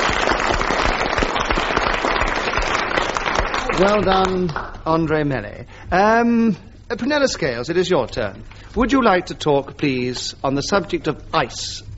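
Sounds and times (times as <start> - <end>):
round of applause: 0.0 - 4.8
speech: 3.8 - 11.9.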